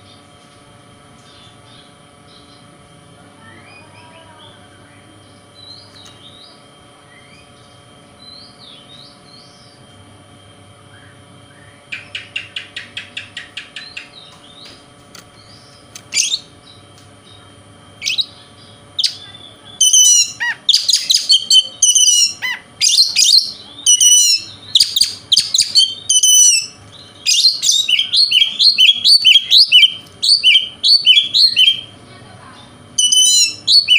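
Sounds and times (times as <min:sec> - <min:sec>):
faint hum: 0:00.0 - 0:33.9
Oriental magpie-robin song: 0:19.8 - 0:31.9, 0:33.0 - 0:33.9.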